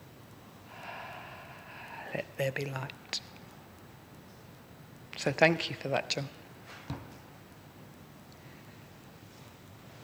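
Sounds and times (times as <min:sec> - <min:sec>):
voice imitating an exhalation: 0:00.7 - 0:02.2
speech: 0:02.2 - 0:03.3, 0:05.2 - 0:06.4.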